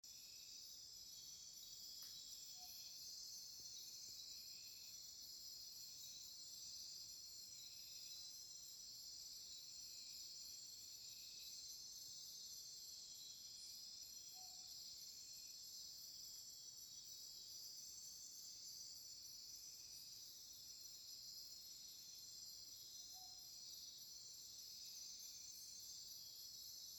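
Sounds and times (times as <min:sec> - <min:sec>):
jungle ambience: 0:00.1 - 0:26.9.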